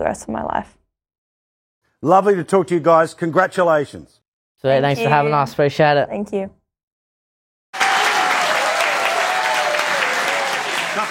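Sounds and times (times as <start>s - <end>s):
speech: 0.0s - 0.8s, 2.0s - 6.6s
audience applause: 7.8s - 11.0s.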